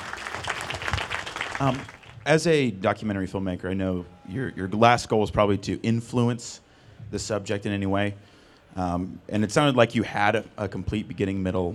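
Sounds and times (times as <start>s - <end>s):
audience applause: 0.0s - 2.2s
speech: 1.6s - 11.7s.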